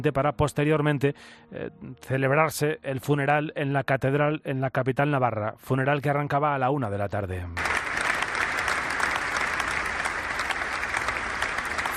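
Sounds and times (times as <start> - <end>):
speech: 0.0 - 7.7
crowd applause outside cathedral: 7.6 - 11.9.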